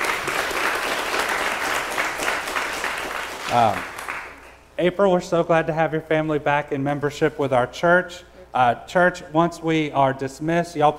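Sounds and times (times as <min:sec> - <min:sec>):
audience applause: 0:00.0 - 0:04.5
speech: 0:03.5 - 0:03.9, 0:04.8 - 0:10.9.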